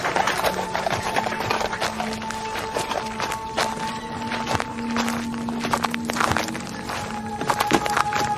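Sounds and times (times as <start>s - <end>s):
horse-drawn carriage hooves clip-clopping: 0.0s - 8.3s.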